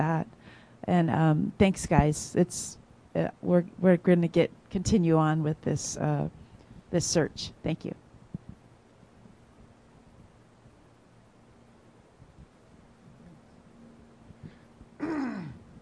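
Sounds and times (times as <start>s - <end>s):
speech: 0.0s - 8.0s
faint low hum: 0.0s - 15.8s
throat clearing: 15.0s - 15.7s.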